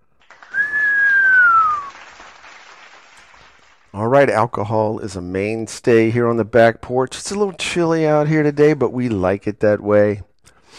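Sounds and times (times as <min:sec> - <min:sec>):
crowd cheering: 0:00.0 - 0:03.8
long shrill whistle: 0:00.4 - 0:02.1
speech: 0:04.0 - 0:10.7.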